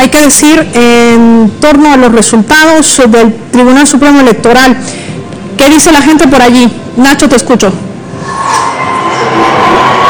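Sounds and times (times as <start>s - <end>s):
speech: 0.0s - 7.9s
large crowd cheering at rising election results: 8.2s - 10.0s.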